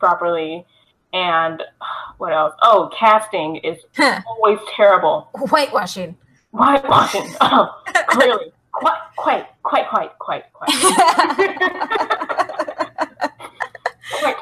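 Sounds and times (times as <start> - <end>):
speech: 0.0 - 12.3, 14.1 - 14.3
laughter: 6.9 - 8.4, 10.7 - 14.3
person clearing throat: 6.9 - 8.4.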